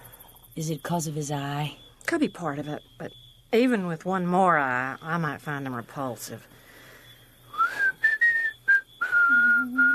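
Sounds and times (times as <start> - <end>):
speech: 0.6 - 6.6
person whistling a tune: 7.5 - 9.9.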